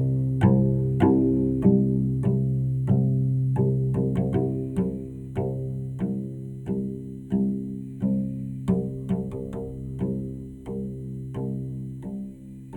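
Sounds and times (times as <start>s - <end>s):
cello playing C note: 0.0s - 12.7s.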